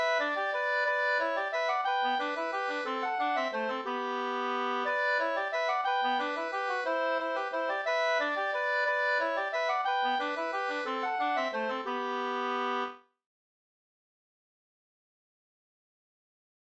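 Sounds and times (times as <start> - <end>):
folk dance polska music: 0.0 - 12.9.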